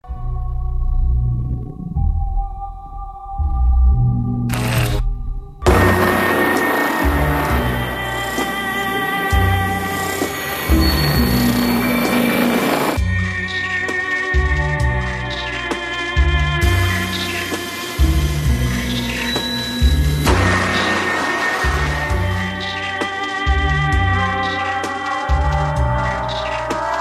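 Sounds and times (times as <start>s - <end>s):
American horror film music: 0.0s - 26.9s.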